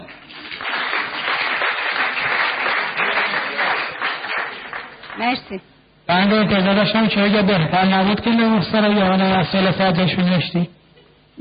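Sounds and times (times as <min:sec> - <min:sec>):
audience applause: 0:00.0 - 0:05.3
speech: 0:05.2 - 0:10.8.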